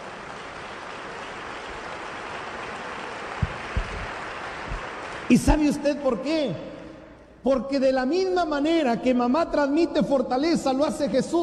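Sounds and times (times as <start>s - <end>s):
audience clapping: 0.0s - 6.2s
low thumps: 3.4s - 4.1s
speech: 5.3s - 6.7s, 7.4s - 11.4s.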